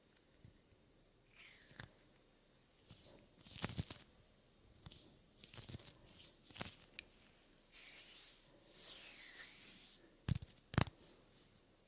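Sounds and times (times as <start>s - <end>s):
hand movements and skin rubbing: 1.3s - 2.0s, 2.8s - 4.1s, 4.8s - 10.9s.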